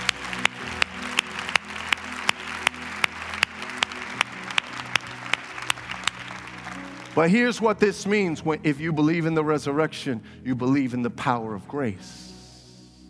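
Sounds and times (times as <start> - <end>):
audience applause: 0.0 - 7.3
speech: 7.2 - 12.3.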